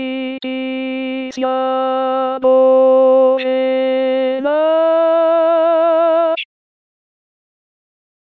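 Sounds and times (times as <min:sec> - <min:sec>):
alto voice singing: 0:00.0 - 0:06.5.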